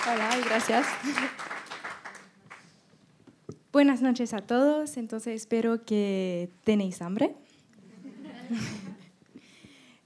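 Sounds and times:
speech: 0.0 - 1.6, 3.7 - 7.4, 8.5 - 8.8
audience applause: 0.0 - 2.6
laughter: 1.0 - 1.5, 7.9 - 9.2.

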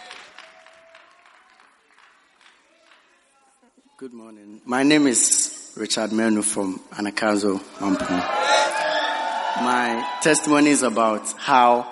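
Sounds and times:
applause welcoming a speaker at a church service: 0.0 - 3.6
speech: 4.0 - 8.8, 9.6 - 11.9.

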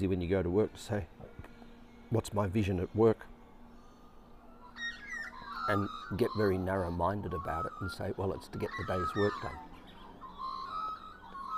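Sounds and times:
speech: 0.0 - 1.2, 2.1 - 3.3, 5.7 - 9.7
birds singing: 0.0 - 11.5.

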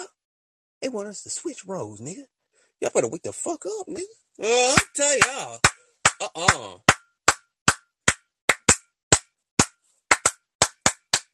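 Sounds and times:
speech: 0.8 - 6.9
church clapping sound effect: 4.7 - 8.8, 10.1 - 11.3.

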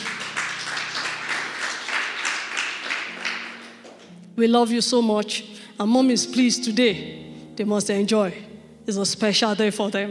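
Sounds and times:
audience round of applause: 0.0 - 4.0
speech: 4.4 - 10.0.

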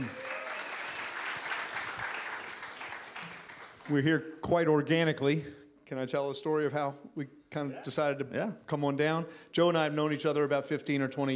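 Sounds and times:
talk show audience applause welcoming a guest: 0.0 - 4.0
speech: 3.9 - 11.3.

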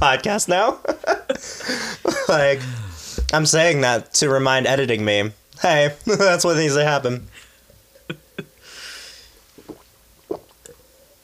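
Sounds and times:
speech: 0.1 - 7.4
person gulping water: 2.5 - 3.4, 9.5 - 10.9.

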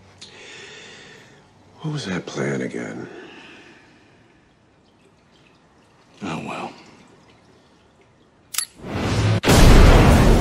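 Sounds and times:
speech: 1.8 - 3.2
sharp click: 8.5 - 8.8
bomb exploding inside an invisible man in a TV show: 8.9 - 10.4.

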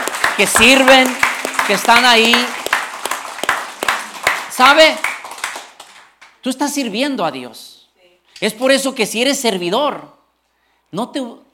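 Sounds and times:
audience applause: 0.0 - 6.2
speech: 0.4 - 2.6, 4.6 - 5.1, 6.4 - 7.7, 8.4 - 10.2, 10.9 - 11.5.

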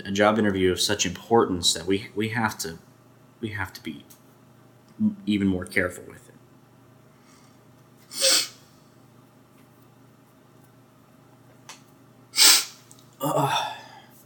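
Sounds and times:
speech: 0.0 - 4.2, 5.0 - 6.2
noisy burst of breath: 7.1 - 8.8
person sneezing from allergies: 8.1 - 8.6, 12.4 - 14.0.

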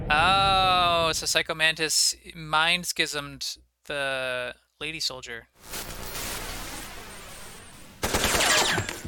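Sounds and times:
speech: 0.1 - 0.5, 1.1 - 5.9
machine gun fire in a video game: 8.0 - 8.8.

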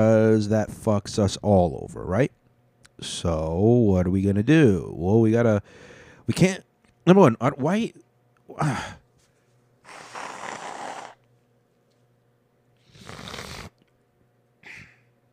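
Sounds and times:
speech: 0.0 - 2.4, 3.0 - 9.0
person blowing nose: 9.8 - 11.2, 12.8 - 13.8.

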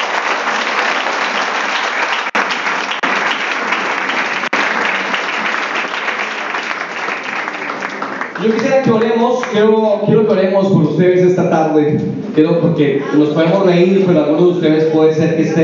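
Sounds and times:
audience applause: 0.0 - 9.6
speech: 8.4 - 15.6.

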